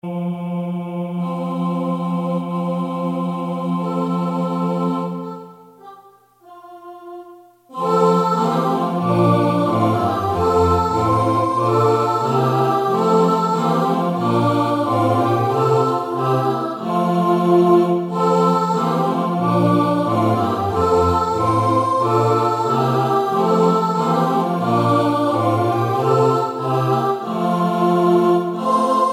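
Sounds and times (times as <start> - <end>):
soprano singing: 0.1 - 29.1.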